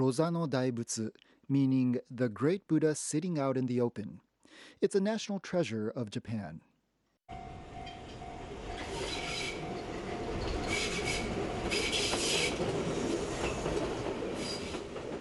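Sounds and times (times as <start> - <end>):
speech: 0.0 - 6.7
train riding on rails: 7.3 - 15.1.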